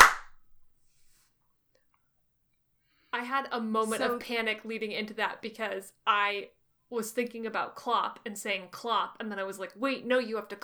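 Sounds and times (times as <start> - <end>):
hand clap: 0.0 - 0.5
speech: 3.2 - 10.6.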